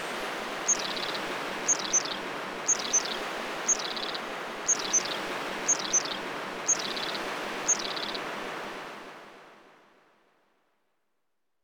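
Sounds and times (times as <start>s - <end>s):
forest ambience: 0.0s - 8.2s.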